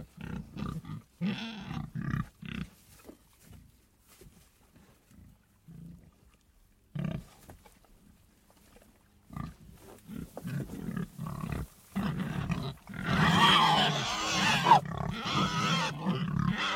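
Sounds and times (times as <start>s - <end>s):
pig toy grunts: 0.0s - 2.8s, 6.9s - 7.4s, 9.3s - 16.7s
squealing and snorting: 10.1s - 16.7s.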